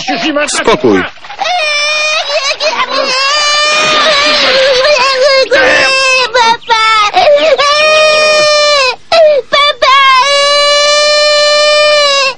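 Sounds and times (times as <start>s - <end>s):
laughter: 0.0s - 8.9s
speech: 0.1s - 1.4s
child crying and screaming: 1.4s - 12.3s.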